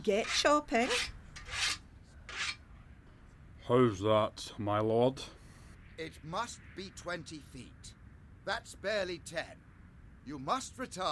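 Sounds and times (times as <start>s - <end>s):
speech: 0.0s - 1.2s, 3.7s - 5.4s, 6.0s - 9.7s, 10.3s - 11.0s
sickle blade being sharpened: 0.0s - 2.6s.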